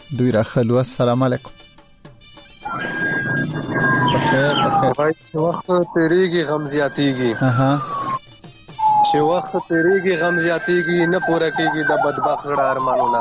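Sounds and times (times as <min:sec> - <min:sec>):
speech: 0:00.1 - 0:01.6, 0:02.8 - 0:08.0, 0:09.1 - 0:13.1
ambulance and police car sirens: 0:02.6 - 0:08.2, 0:08.8 - 0:13.1.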